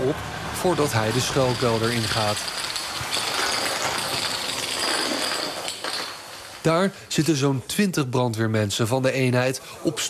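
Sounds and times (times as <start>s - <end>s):
fire trucks being driven indoors: 0.0s - 4.6s
speech: 0.1s - 3.2s, 6.6s - 10.0s
metallic clink: 1.0s - 6.6s.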